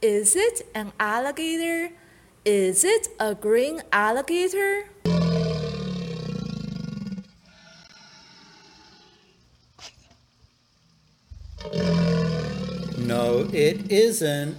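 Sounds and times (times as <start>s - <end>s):
speech: 0.0s - 5.2s, 13.1s - 14.5s
green frog croaking: 5.1s - 7.2s, 11.6s - 14.2s.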